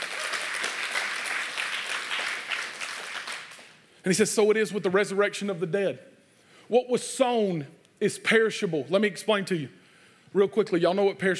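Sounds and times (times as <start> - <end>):
audience clapping: 0.0 - 3.9
speech: 4.0 - 11.3.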